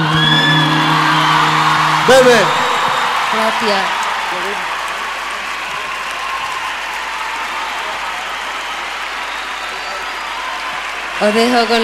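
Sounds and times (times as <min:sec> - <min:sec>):
audience applause: 0:00.0 - 0:11.8
speech: 0:02.1 - 0:02.6, 0:03.4 - 0:04.6, 0:11.2 - 0:11.8.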